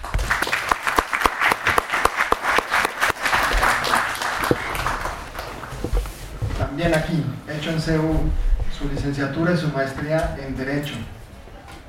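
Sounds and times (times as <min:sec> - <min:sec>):
audience applause welcoming a lecturer at a university law talk: 0:00.0 - 0:06.0
speech: 0:06.9 - 0:11.2.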